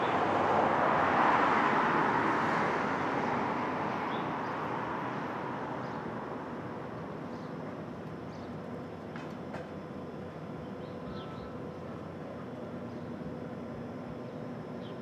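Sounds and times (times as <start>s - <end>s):
vehicle passing on a Brooklyn street at dawn: 0.0s - 7.1s
low street traffic rumble in Brooklyn: 0.0s - 15.0s.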